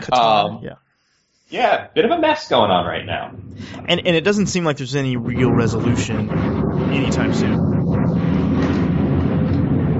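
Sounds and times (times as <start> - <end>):
speech: 0.0 - 0.9, 1.5 - 7.7
jet airliner, possibly an Airbus A340, landing near Maho Beach on St. Martin: 5.2 - 9.9.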